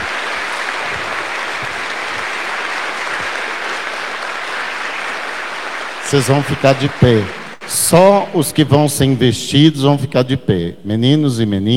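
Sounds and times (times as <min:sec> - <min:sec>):
audience applause for children: 0:00.0 - 0:08.0
speech: 0:06.1 - 0:11.7.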